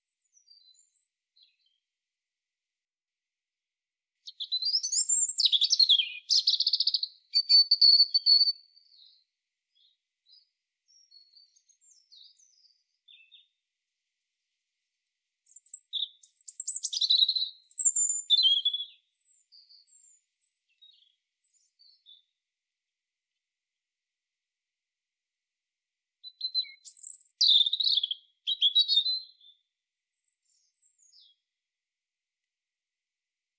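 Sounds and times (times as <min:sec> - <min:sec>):
European robin singing high whistles and trills: 0:04.3 - 0:08.7, 0:15.5 - 0:19.0, 0:26.3 - 0:29.5.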